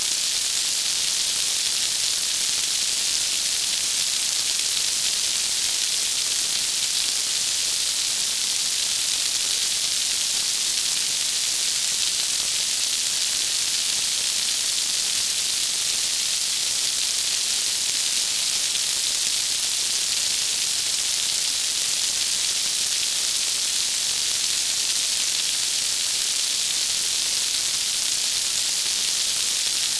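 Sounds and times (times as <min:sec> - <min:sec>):
rain: 0:00.0 - 0:29.9.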